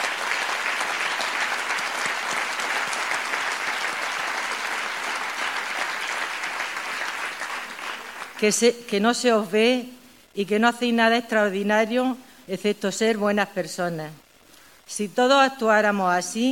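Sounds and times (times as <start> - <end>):
audience applause: 0.0 - 8.4
speech: 8.4 - 14.2, 14.9 - 16.5.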